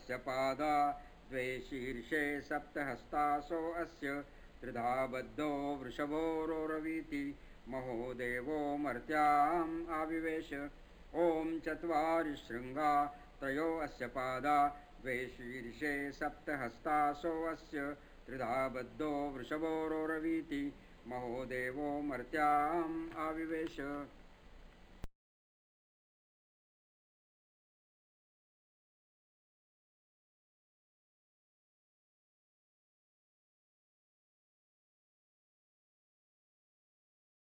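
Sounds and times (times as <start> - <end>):
person chanting om: 0.0 - 24.1.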